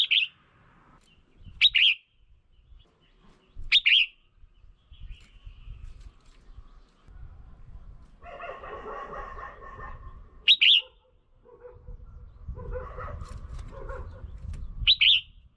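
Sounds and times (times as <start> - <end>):
red-whiskered bulbul calls: 0.0 - 0.4, 1.1 - 2.2, 10.5 - 11.0.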